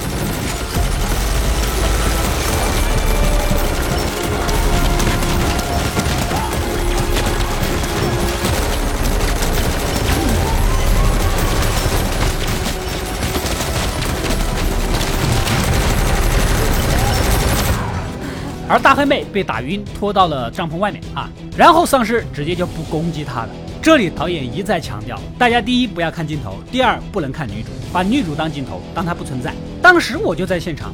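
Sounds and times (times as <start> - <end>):
drone machine-gun strafing fire: 0.0 - 18.2
speech: 18.7 - 30.9.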